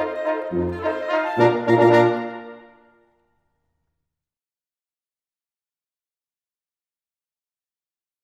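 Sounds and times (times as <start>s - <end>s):
German band playing: 0.0s - 2.8s.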